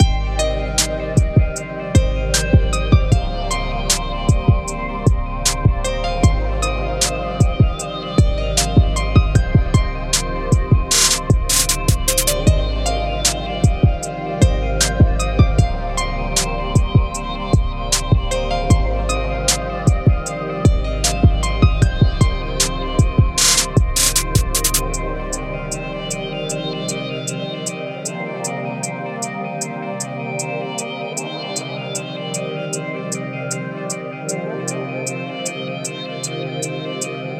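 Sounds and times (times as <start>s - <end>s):
helium trap loop: 0.0s - 29.8s.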